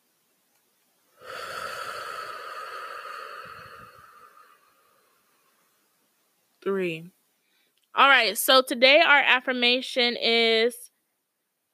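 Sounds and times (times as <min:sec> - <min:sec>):
deep inhale during a guided breathing exercise: 0:01.2 - 0:05.8
speech: 0:06.6 - 0:07.2, 0:08.0 - 0:10.9.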